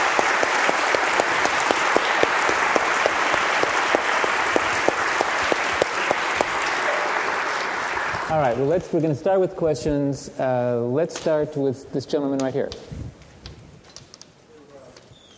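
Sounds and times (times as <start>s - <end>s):
audience applause: 0.0s - 8.8s
speech: 8.3s - 13.0s.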